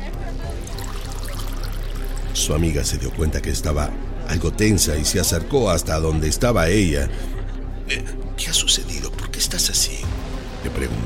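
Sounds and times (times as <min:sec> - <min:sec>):
wine pouring into a glass: 0:00.5 - 0:04.9
speech: 0:02.4 - 0:07.3, 0:07.9 - 0:11.0.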